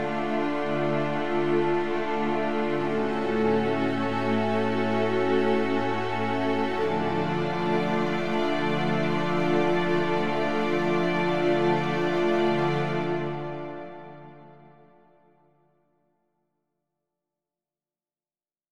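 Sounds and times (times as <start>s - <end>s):
organ music for the appearance of a powerful character: 0.0s - 14.8s.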